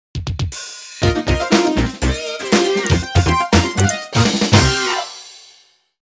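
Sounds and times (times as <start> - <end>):
bowling theme tune: 1.0 - 5.5.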